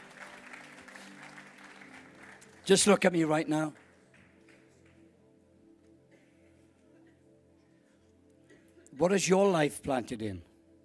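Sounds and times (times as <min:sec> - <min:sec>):
audience applause: 0:00.0 - 0:04.8
speech: 0:02.7 - 0:03.8, 0:09.0 - 0:10.5.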